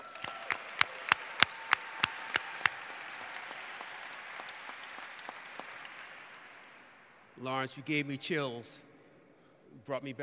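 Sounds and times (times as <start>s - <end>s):
audience rhythmic clapping: 0.0s - 7.4s
speech: 7.4s - 8.9s, 9.9s - 10.2s.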